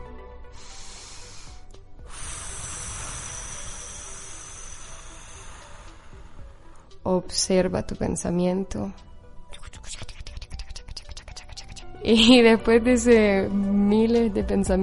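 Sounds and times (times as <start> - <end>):
deep breath: 0.5 - 7.0
speech: 7.1 - 9.1, 12.1 - 14.8.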